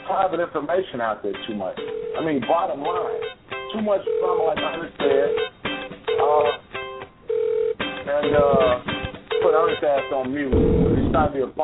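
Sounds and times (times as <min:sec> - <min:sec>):
speech: 0:00.1 - 0:05.5, 0:06.2 - 0:06.6, 0:08.1 - 0:11.6
telephone ringing with incoming call: 0:01.8 - 0:06.6, 0:07.3 - 0:11.3.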